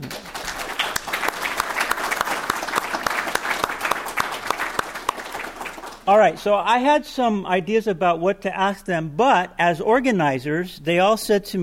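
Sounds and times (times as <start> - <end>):
audience applause: 0.0 - 6.1
speech: 6.1 - 11.6.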